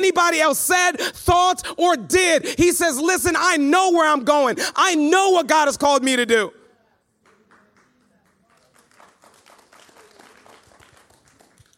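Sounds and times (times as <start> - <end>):
speech: 0.0 - 6.6
few people clapping: 7.2 - 11.7.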